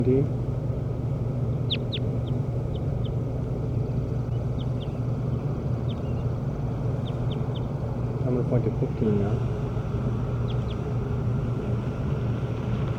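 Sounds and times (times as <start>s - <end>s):
speech: 0.0s - 0.5s, 8.3s - 10.2s
low rumbling noise: 0.0s - 12.9s
bird chirping in response: 1.4s - 8.2s, 9.6s - 11.1s.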